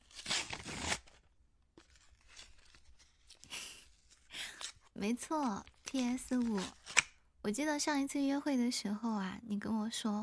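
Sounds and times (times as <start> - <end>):
paper wrapping on a gift box being torn open: 0.0 - 4.9, 5.6 - 7.2
speech: 5.0 - 6.8, 7.4 - 10.2.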